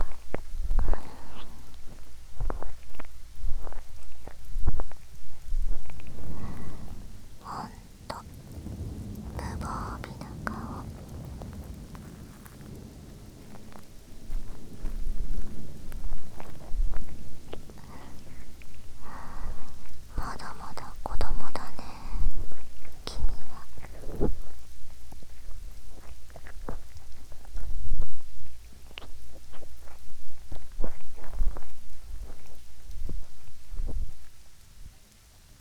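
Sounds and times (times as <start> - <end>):
person whispering: 0.0 - 1.8, 6.2 - 8.5, 9.3 - 11.2, 17.5 - 24.6
rain: 0.0 - 35.5.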